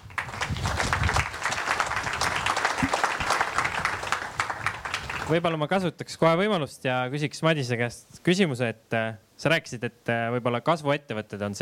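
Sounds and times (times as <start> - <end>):
audience applause: 0.0 - 5.4
speech: 5.3 - 11.5.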